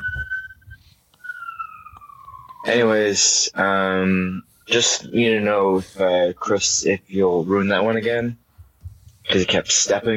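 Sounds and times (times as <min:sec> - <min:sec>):
police car driving by a house: 0:01.2 - 0:03.0
speech: 0:02.6 - 0:08.4, 0:09.3 - 0:10.1.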